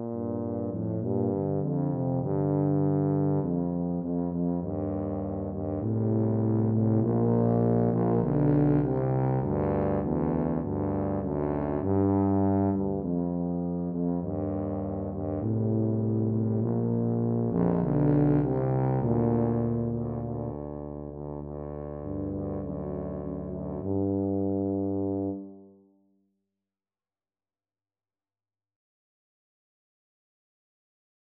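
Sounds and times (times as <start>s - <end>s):
tuba trio playing: 0.0s - 25.7s.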